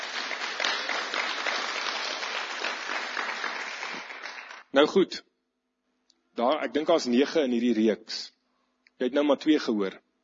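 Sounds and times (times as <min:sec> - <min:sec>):
church congregation applauding: 0:00.0 - 0:04.7
speech: 0:04.7 - 0:05.3, 0:06.4 - 0:08.3, 0:09.0 - 0:10.0.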